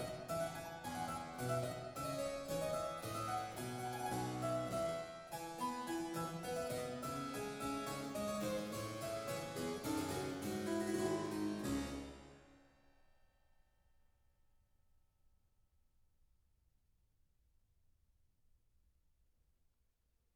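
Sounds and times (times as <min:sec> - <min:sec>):
harpsichord piece in D minor: 0:00.0 - 0:12.6.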